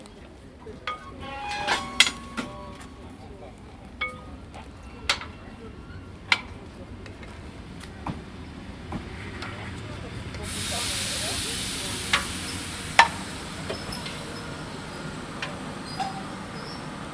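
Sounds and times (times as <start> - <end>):
man checking the train at the platform: 0.8 - 3.3, 6.2 - 17.1.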